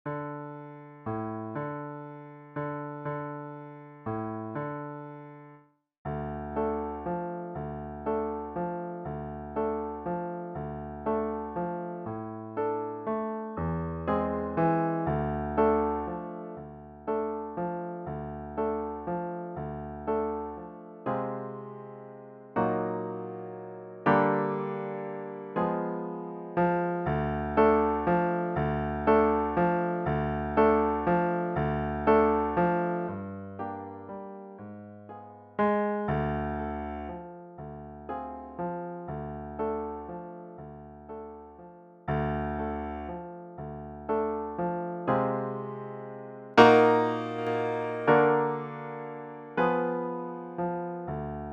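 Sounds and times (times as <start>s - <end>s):
piano: 0.0s - 51.5s.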